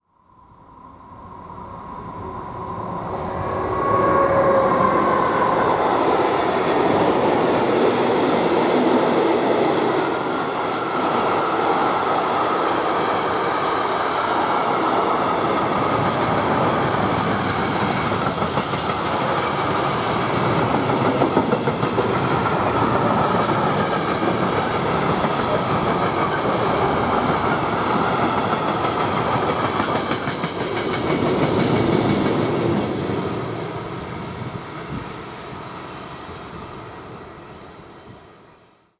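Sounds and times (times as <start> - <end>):
diesel and electric trains: 0.2 - 38.9.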